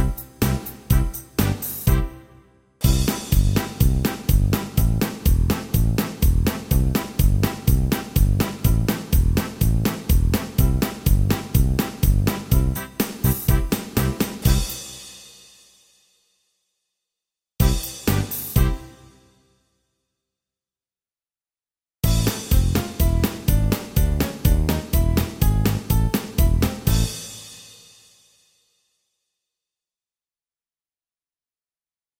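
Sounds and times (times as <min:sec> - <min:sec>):
folk dance music: 0:00.0 - 0:14.8, 0:17.6 - 0:19.1, 0:22.0 - 0:27.3.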